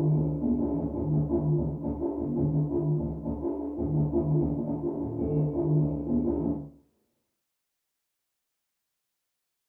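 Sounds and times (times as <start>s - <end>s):
electronic dance music: 0.0s - 6.6s.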